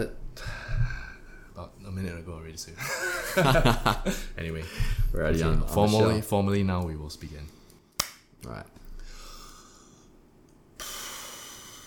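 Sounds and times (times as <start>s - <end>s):
speech: 0.0s - 0.6s, 1.6s - 7.6s, 8.4s - 8.8s
deep breath: 0.4s - 1.5s, 4.6s - 5.2s, 8.9s - 10.2s, 10.8s - 11.8s.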